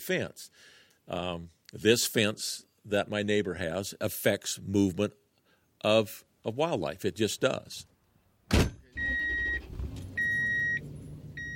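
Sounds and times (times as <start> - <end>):
speech: 0.0 - 5.2, 5.8 - 7.9
heavy thump: 8.5 - 8.8
car engine on a drive into Arizona pronghorn country: 9.1 - 11.5.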